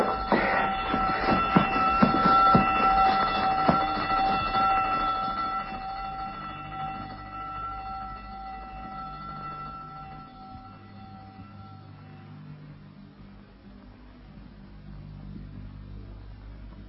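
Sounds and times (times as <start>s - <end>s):
prison alarm bell ringing: 0.0s - 12.8s.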